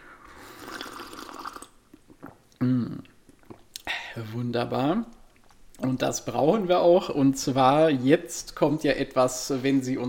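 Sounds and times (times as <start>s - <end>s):
sipping a caffeinated apple spritzer: 0.0s - 3.9s
speech: 2.6s - 3.1s, 4.2s - 5.2s, 5.8s - 10.0s.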